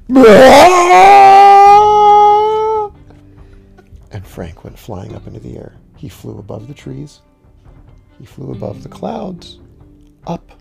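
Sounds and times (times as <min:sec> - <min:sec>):
person letting out a mighty scream: 0:00.0 - 0:02.9
speech: 0:00.1 - 0:01.2, 0:04.4 - 0:07.3, 0:08.2 - 0:09.6, 0:10.2 - 0:10.5.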